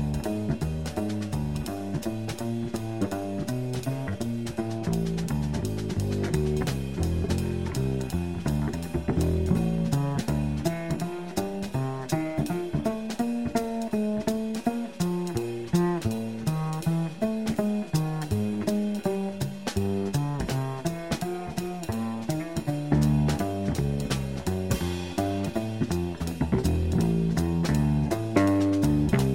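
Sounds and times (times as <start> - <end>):
blues music without piano: 0.0 - 29.3.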